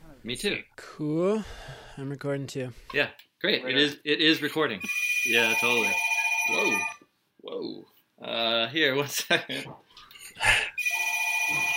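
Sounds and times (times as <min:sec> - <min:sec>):
speech: 0:00.2 - 0:06.9, 0:07.5 - 0:09.8
old landline telephone ringing: 0:04.8 - 0:07.0, 0:10.8 - 0:11.7.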